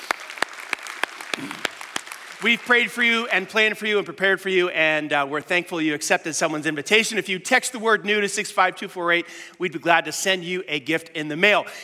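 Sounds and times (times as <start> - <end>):
claps at a church service: 0.0 - 3.7
speech: 2.4 - 11.8.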